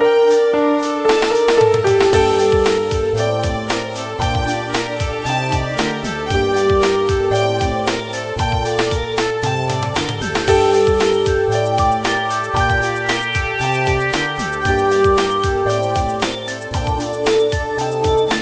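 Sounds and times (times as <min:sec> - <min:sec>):
ringtone: 0:00.1 - 0:18.3.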